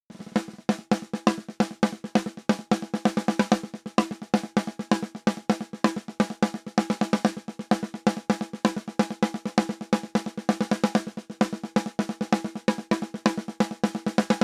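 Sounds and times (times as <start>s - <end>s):
snare drum hit at 50 percent gain: 0.1s - 14.4s.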